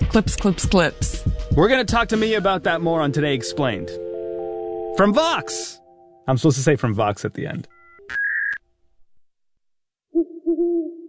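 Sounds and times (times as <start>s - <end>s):
speech: 0.2s - 4.0s, 5.0s - 8.2s
owl hooting: 10.1s - 11.0s.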